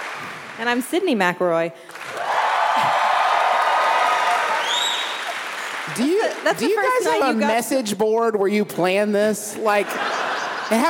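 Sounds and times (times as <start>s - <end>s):
live audience applause and cheering: 0.0s - 0.8s, 1.9s - 7.4s
speech: 0.2s - 2.2s, 2.8s - 3.1s, 5.9s - 10.1s, 10.7s - 10.8s
laughter: 9.6s - 10.8s.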